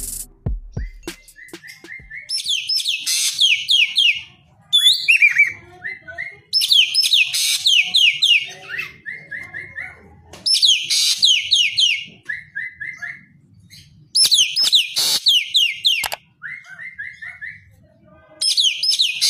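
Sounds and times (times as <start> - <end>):
Javan green magpie singing: 0.7 - 17.7, 18.4 - 19.2.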